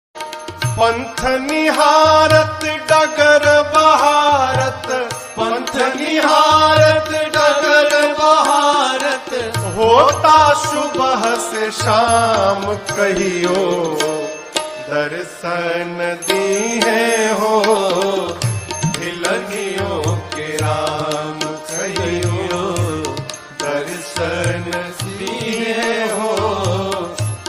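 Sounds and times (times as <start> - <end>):
bhakti ringtone: 0.4 - 27.4.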